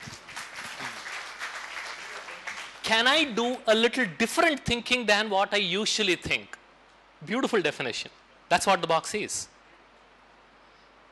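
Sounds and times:
faint audience clapping at a lecture: 0:00.0 - 0:03.6
speech: 0:02.9 - 0:06.6, 0:07.2 - 0:09.6.

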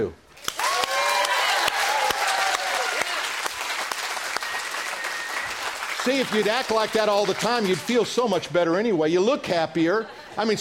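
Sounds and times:
speech: 0:00.0 - 0:00.2, 0:06.0 - 0:10.5
whoops and high cheering voices: 0:00.4 - 0:05.8
audience clapping: 0:00.4 - 0:08.2.

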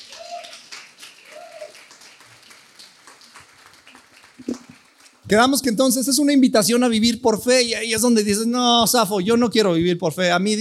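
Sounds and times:
audience applause: 0:00.0 - 0:05.3
speech: 0:05.3 - 0:10.6.

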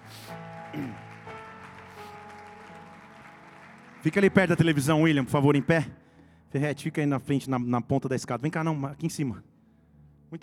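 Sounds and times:
audience applause: 0:00.0 - 0:05.9
speech: 0:00.7 - 0:01.1, 0:04.0 - 0:09.5.

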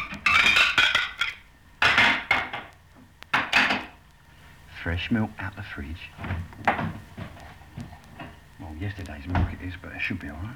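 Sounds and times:
ceramic saucers clinking as they are set down: 0:00.0 - 0:02.7, 0:03.3 - 0:04.0
speech: 0:04.8 - 0:07.2, 0:08.8 - 0:10.5.

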